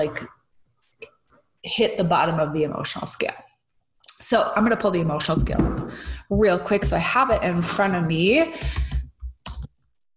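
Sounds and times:
speech: 0.0s - 0.4s, 1.6s - 3.5s, 4.2s - 8.8s
typing on a computer keyboard: 8.6s - 9.9s.

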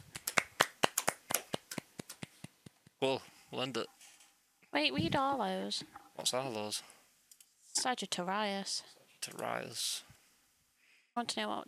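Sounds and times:
hand clapping: 0.0s - 2.9s
speech: 3.0s - 4.0s, 4.7s - 6.9s, 7.8s - 10.1s, 11.2s - 11.6s.

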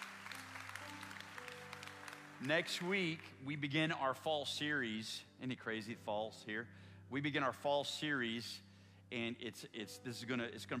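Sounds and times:
audience applause: 0.0s - 3.3s
speech: 2.4s - 10.7s.

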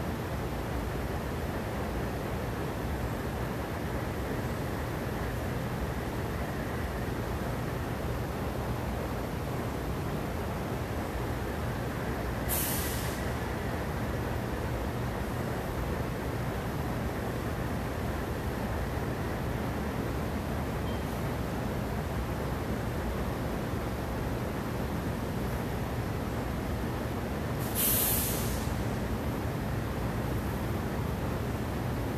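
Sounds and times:
air conditioners roaring: 0.0s - 32.1s
bursts of hiss: 27.6s - 28.8s.

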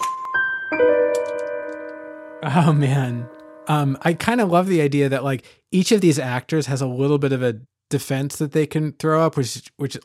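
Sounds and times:
video game correct-answer chime: 0.0s - 4.2s
speech: 2.4s - 10.0s.

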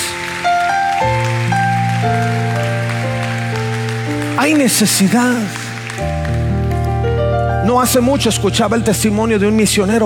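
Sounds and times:
audience applause: 0.0s - 7.2s
keyboard or organ chords: 0.0s - 10.0s
speech: 4.4s - 5.6s, 7.7s - 10.0s.

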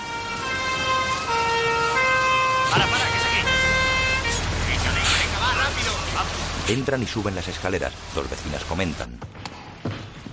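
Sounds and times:
fire engine siren wailing: 0.0s - 6.9s
traffic rumble: 0.0s - 10.3s
speech: 6.7s - 9.4s.

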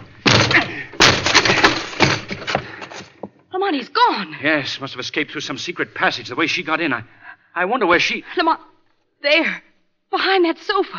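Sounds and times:
door being broken down: 0.0s - 3.1s
wood splintering: 0.2s - 3.2s
speech: 3.6s - 10.9s.

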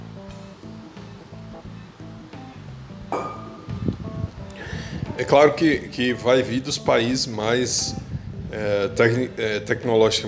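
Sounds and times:
glass clinks as water is drunk: 3.1s - 3.7s
speech: 5.2s - 10.2s.

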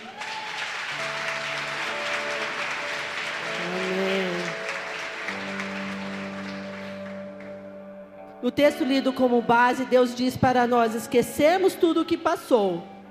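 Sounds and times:
audience applauding: 0.0s - 7.8s
organ-like keyboard chords: 0.6s - 11.7s
speech: 8.4s - 12.9s.

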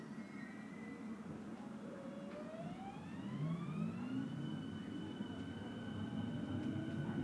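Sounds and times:
faint tones: 0.2s - 7.2s
S-Bahn train rumbling on Berlin's Ringbahn: 1.3s - 7.2s
rising whine as the train picks up speed: 1.8s - 7.2s.

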